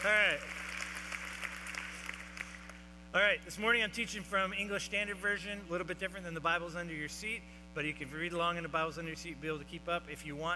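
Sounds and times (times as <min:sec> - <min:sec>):
speech: 0:00.0 - 0:00.6, 0:03.1 - 0:10.5
audience clapping: 0:00.0 - 0:02.8.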